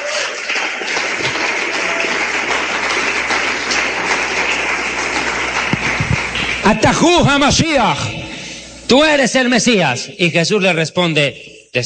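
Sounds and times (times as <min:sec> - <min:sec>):
crowd applause: 0:00.0 - 0:08.1
speech: 0:06.7 - 0:08.1, 0:08.9 - 0:11.8.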